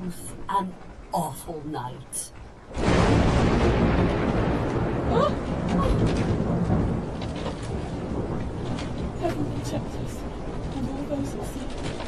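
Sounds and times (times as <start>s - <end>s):
pouring rain in a raging storm: 0.0s - 12.0s
wind: 0.0s - 12.0s
speech: 0.1s - 4.3s, 5.1s - 6.4s, 9.2s - 12.0s
deep low rumbling: 2.6s - 12.0s
hail: 2.6s - 12.0s.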